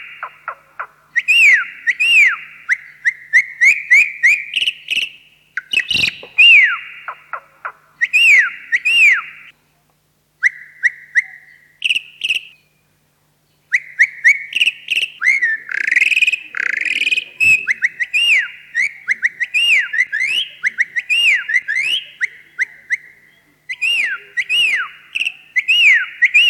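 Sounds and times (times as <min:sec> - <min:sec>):
Javan pied starling calling: 0:00.0 - 0:09.5, 0:13.7 - 0:26.4.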